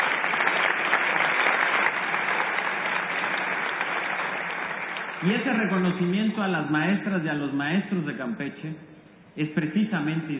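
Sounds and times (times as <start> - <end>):
audience applauding: 0.0 - 5.9
speech: 5.2 - 10.3.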